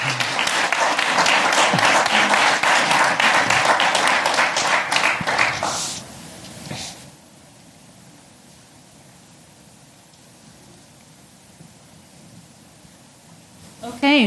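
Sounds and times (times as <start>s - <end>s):
audience applause: 0.0s - 6.0s.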